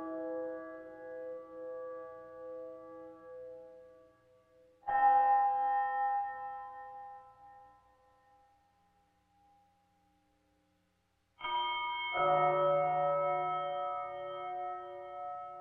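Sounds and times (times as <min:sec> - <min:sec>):
mysterious bells: 0:04.8 - 0:09.6, 0:11.4 - 0:15.5.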